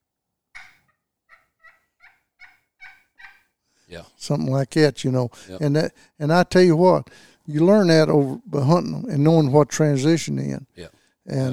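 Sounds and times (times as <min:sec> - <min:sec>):
hunter's turkey call making soft yelping notes: 0:00.6 - 0:03.5
speech: 0:03.9 - 0:11.5.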